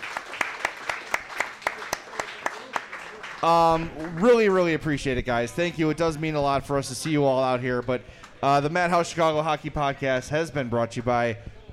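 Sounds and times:
audience applause: 0.0s - 4.8s
speech: 3.4s - 11.6s.

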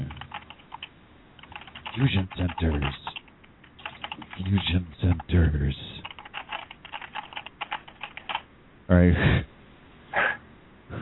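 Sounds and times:
fingers typing on a computer keyboard: 0.0s - 5.3s, 6.0s - 8.5s
speech: 2.0s - 3.1s, 4.4s - 6.0s, 8.9s - 9.5s.

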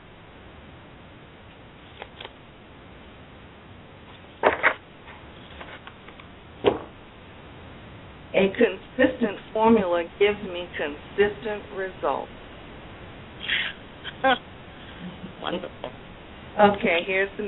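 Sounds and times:
shuffling cards: 1.8s - 2.4s
speech: 8.4s - 12.4s, 14.2s - 14.5s, 15.5s - 17.4s.

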